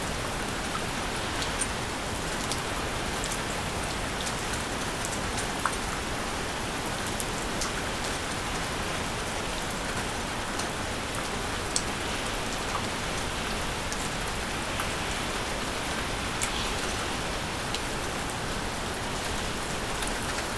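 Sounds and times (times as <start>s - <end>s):
rainfall: 0.0s - 20.5s.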